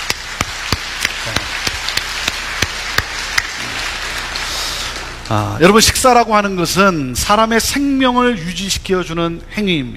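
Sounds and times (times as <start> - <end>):
audience clapping: 0.0 - 5.4
speech: 5.3 - 9.9.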